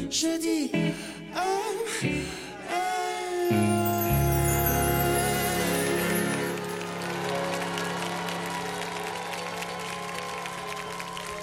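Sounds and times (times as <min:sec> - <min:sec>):
speech: 0:00.1 - 0:03.6
live concert audience applause: 0:03.9 - 0:11.4.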